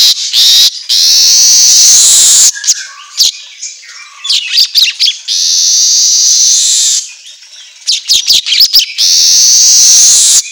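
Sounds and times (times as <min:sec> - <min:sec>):
Asian golden weaver singing: 0:00.0 - 0:02.8, 0:04.6 - 0:07.0, 0:08.0 - 0:10.4.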